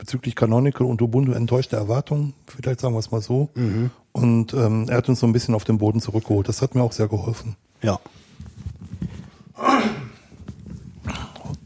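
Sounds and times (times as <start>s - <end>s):
speech: 0.0s - 8.2s
person clearing throat: 9.6s - 10.3s.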